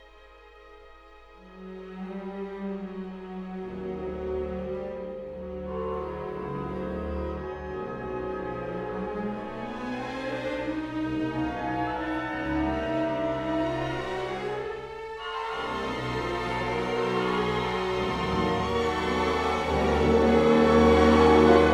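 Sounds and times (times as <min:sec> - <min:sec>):
orchestra: 0:00.0 - 0:21.7.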